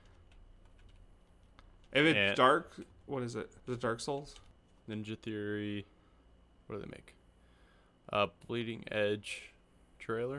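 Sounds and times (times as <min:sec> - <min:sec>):
typing a search term on a computer keyboard: 0:00.0 - 0:03.0, 0:03.6 - 0:04.6
speech: 0:01.9 - 0:05.9, 0:06.7 - 0:07.2, 0:08.1 - 0:10.3.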